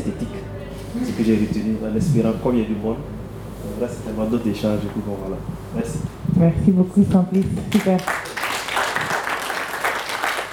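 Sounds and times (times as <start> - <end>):
speech: 1.3 - 8.4
audience applauding at a farmers' fair gathering: 7.7 - 10.5.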